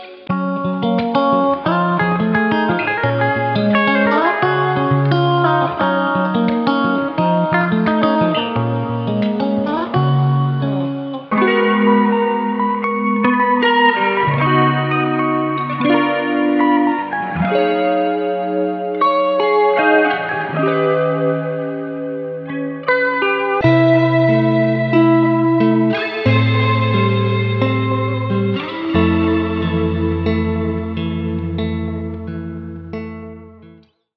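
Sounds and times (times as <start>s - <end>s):
R and B soulful guitar licks: 0.0s - 34.0s.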